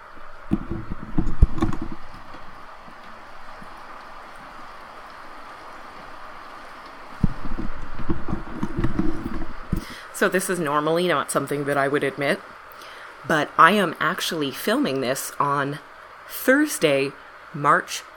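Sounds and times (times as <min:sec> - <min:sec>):
rain: 0:00.0 - 0:18.1
speech: 0:10.2 - 0:12.5, 0:13.3 - 0:18.1.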